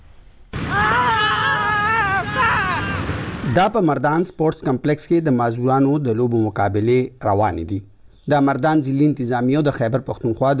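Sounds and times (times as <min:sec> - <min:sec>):
players shouting at a disabled athletes' sports gala at Mardan Sports Complex: 0:00.6 - 0:03.6
speech: 0:03.6 - 0:10.5.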